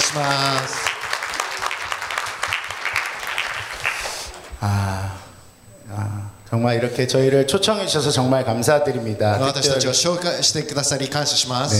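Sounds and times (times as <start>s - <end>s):
church congregation clapping for performers at a Full Gospel church service in Fukuoka: 0.0s - 4.6s
speech: 0.1s - 0.8s, 4.6s - 5.2s, 5.9s - 11.7s.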